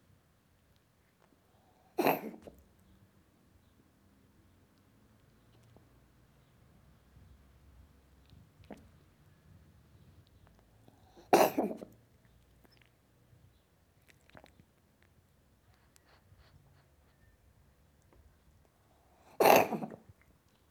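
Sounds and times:
cat coughing: 0:02.0 - 0:02.5, 0:11.1 - 0:11.9, 0:19.3 - 0:20.0.

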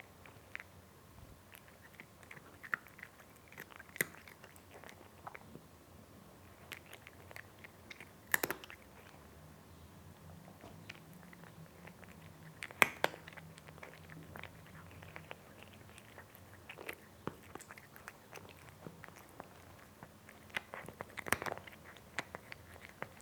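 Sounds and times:
cat eating with sharp crunchy bites: 0:00.0 - 0:00.8, 0:01.5 - 0:05.7, 0:06.4 - 0:09.3, 0:10.5 - 0:23.2.

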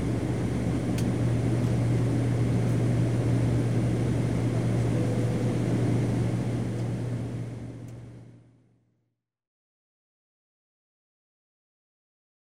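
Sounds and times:
airliner taking off: 0:00.0 - 0:08.3.

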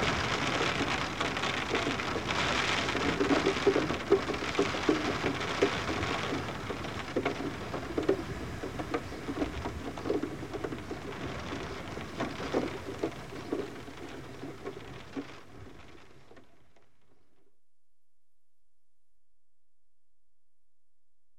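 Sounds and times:
water dripping off roof: 0:00.0 - 0:16.6
rain on window heard from interior: 0:00.0 - 0:17.4.

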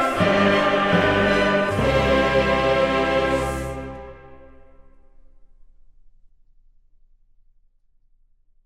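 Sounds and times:
Sanctus of a mass in C: 0:00.0 - 0:05.2.

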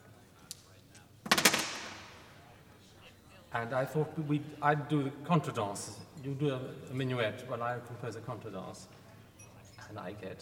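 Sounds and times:
dice being thrown: 0:01.2 - 0:02.2
speech: 0:03.6 - 0:09.0, 0:09.9 - 0:10.4.

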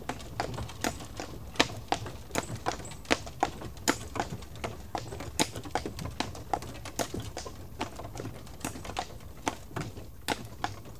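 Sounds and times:
horse hoofbeats: 0:00.0 - 0:10.9.

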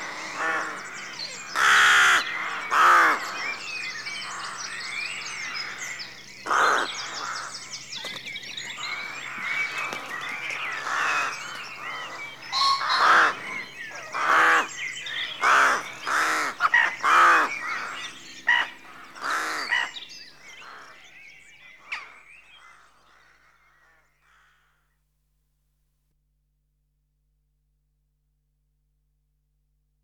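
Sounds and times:
rooks cawing in a rookery at dawn: 0:00.0 - 0:07.7, 0:08.6 - 0:21.1, 0:21.8 - 0:24.8.

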